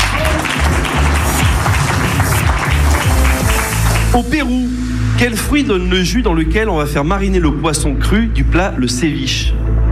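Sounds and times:
audience applause: 0:00.0 - 0:04.2
speech: 0:04.2 - 0:09.7.

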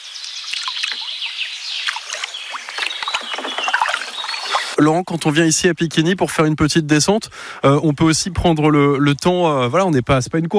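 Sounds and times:
canoe paddles stroking river water: 0:00.4 - 0:04.8
speech: 0:04.8 - 0:10.5.

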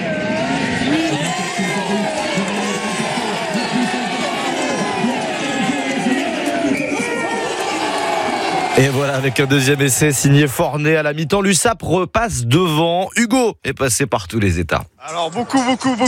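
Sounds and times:
large crowd of fans cheering with joy: 0:00.0 - 0:10.7
speech: 0:08.8 - 0:16.0.

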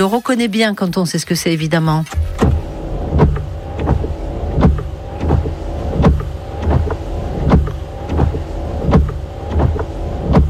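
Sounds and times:
speech: 0:00.0 - 0:02.4
car windshield wipers running dry: 0:02.2 - 0:10.4.

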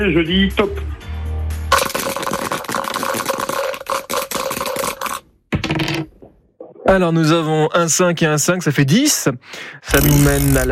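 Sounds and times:
speech: 0:00.0 - 0:00.9, 0:06.9 - 0:10.6
dice rattling and tumbling: 0:01.7 - 0:06.1, 0:09.9 - 0:10.6.

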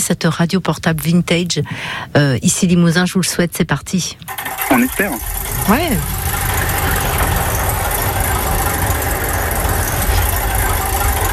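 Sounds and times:
speech: 0:00.0 - 0:06.5
spinning prize wheel sound effect: 0:04.3 - 0:11.3.

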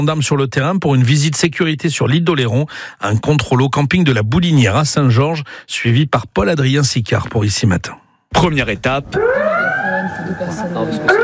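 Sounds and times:
speech: 0:00.0 - 0:11.2
campsite alarm siren being tested: 0:09.0 - 0:11.2.

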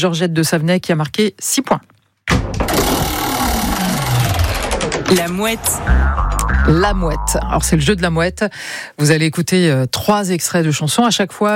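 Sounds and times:
speech: 0:00.0 - 0:02.0, 0:05.1 - 0:11.5
game show roulette wheel spinning: 0:03.1 - 0:06.0.

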